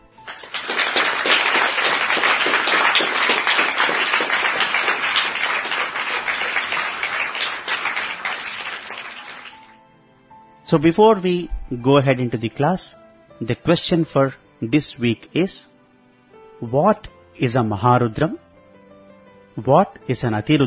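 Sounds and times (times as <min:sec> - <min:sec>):
audience applause for two quiz winners: 0:00.2 - 0:09.7
speech: 0:10.7 - 0:15.7, 0:16.6 - 0:18.4, 0:19.6 - 0:20.6.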